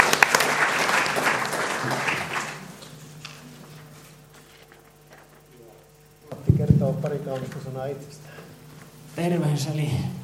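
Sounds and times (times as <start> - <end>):
audience applause: 0.0 - 3.1
speech: 7.0 - 8.3, 9.2 - 10.2.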